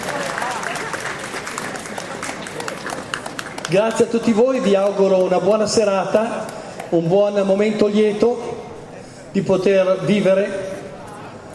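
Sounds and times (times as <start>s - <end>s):
applause: 0.0s - 5.4s, 6.4s - 7.0s
speech: 3.7s - 8.4s, 9.3s - 10.6s.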